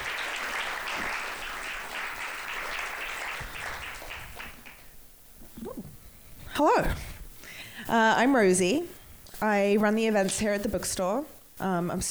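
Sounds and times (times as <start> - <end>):
audience applause: 0.0 - 4.9
speech: 6.6 - 7.0, 7.9 - 12.0.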